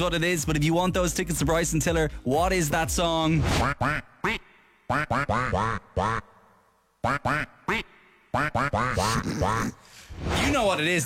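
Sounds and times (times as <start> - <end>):
speech: 0.0 - 6.3, 7.0 - 11.0
man imitating a cartoon duck's raspy sputtering quack: 3.5 - 6.3, 7.0 - 9.8.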